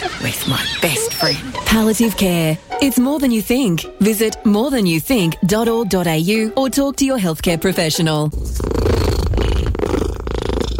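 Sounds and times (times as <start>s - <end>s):
speech: 0.5s - 9.0s
rescued cat purring contentedly: 8.2s - 10.7s.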